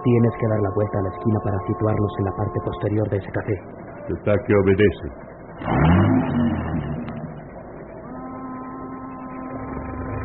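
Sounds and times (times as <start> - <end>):
speech: 0.0 - 6.7
car engine starting: 1.6 - 10.2
car driving off: 4.4 - 10.2.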